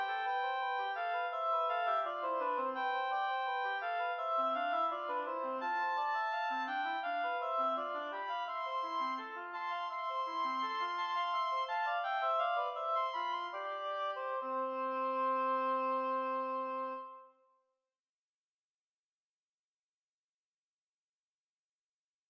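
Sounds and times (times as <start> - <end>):
two oboes playing an air in C major: 0.0 - 17.3.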